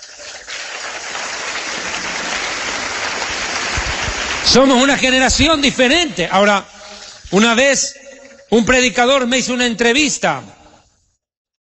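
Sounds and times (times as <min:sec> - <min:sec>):
crowd applause: 0:00.0 - 0:05.7
speech: 0:04.5 - 0:06.7, 0:07.3 - 0:10.6.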